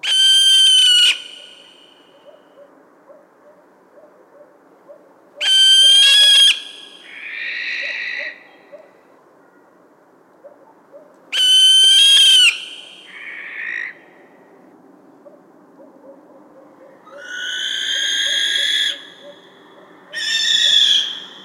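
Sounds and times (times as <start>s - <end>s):
barn owl shrieking: 0.0s - 2.4s, 5.4s - 8.4s, 11.3s - 14.0s, 17.0s - 19.5s, 20.1s - 21.4s.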